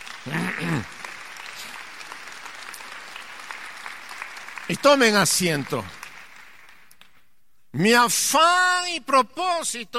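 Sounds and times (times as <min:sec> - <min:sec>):
audience applauding: 0:00.0 - 0:07.1
speech: 0:00.2 - 0:01.0, 0:04.7 - 0:06.0, 0:07.8 - 0:09.9.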